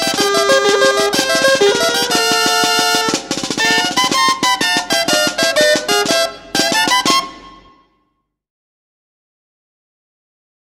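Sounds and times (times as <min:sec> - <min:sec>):
processional sword march music: 0:00.0 - 0:07.8.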